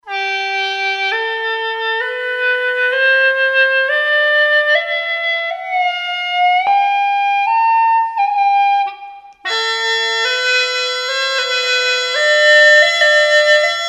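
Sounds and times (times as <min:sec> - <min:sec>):
hulusi flute: 0:00.0 - 0:13.8.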